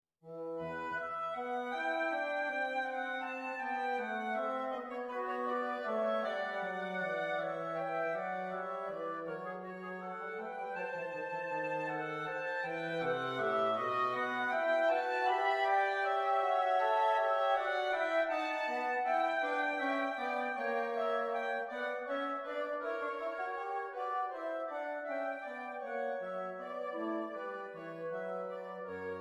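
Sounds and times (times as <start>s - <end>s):
sinfonia in E minor: 0.3s - 29.1s.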